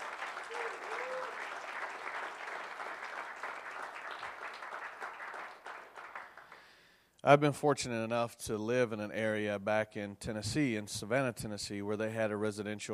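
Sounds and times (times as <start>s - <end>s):
crowd applauding: 0.0s - 6.8s
speech: 7.2s - 12.9s.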